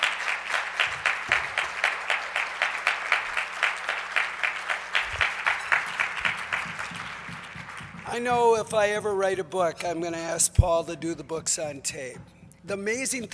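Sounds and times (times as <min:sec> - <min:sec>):
applause from a small group: 0:00.0 - 0:08.6
speech: 0:08.2 - 0:13.3.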